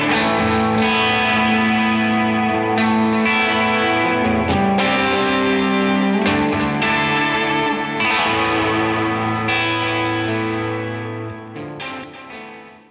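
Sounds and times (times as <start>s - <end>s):
electric guitar through a delay unit: 0.0s - 12.8s
vocals through a delay unit: 0.0s - 12.8s.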